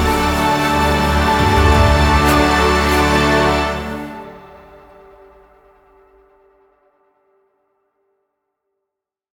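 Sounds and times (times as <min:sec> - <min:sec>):
cutscene music at 84 BPM: 0:00.0 - 0:06.2.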